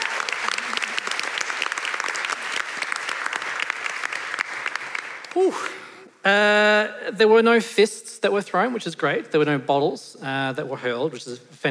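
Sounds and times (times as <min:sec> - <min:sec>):
crowd applauding: 0:00.0 - 0:05.7
speech: 0:05.4 - 0:11.6.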